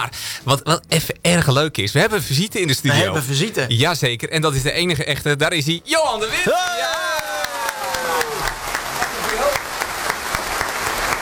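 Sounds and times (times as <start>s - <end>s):
speech: 0.0s - 7.0s
studio audience applause: 6.3s - 11.2s.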